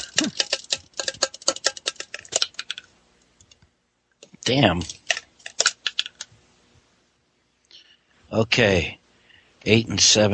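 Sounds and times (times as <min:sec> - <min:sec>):
dice rolled in a cup: 0:00.0 - 0:02.9, 0:04.3 - 0:06.3
speech: 0:04.5 - 0:05.0, 0:08.3 - 0:09.0, 0:09.6 - 0:10.3.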